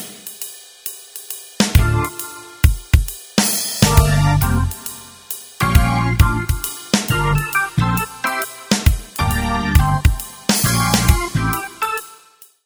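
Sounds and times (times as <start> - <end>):
piano: 1.8 - 2.7, 3.8 - 5.0, 5.6 - 12.2.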